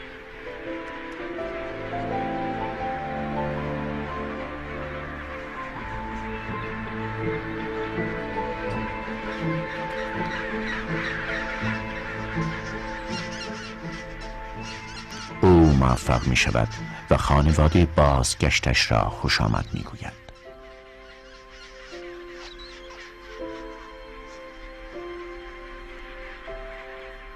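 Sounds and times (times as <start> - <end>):
penguin colony calling: 0.0 - 27.3
speech: 15.8 - 20.2.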